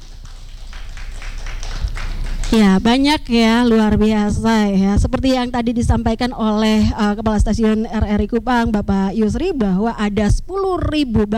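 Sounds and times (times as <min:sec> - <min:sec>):
audience applause: 0:00.0 - 0:02.8
speech: 0:02.5 - 0:11.3.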